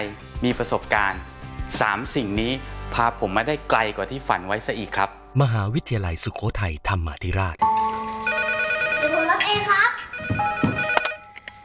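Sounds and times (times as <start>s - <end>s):
speech: 0.0s - 7.7s
phone ringtone electronic melody: 7.6s - 11.6s.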